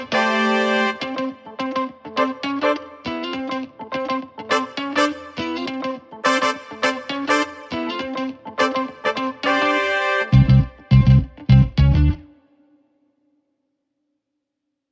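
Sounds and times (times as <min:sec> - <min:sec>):
brass instruments: 0:00.0 - 0:01.3, 0:02.2 - 0:03.1, 0:04.5 - 0:05.6, 0:06.2 - 0:08.0, 0:08.6 - 0:10.7
keyboard: 0:00.0 - 0:12.4
guitar: 0:00.0 - 0:13.1.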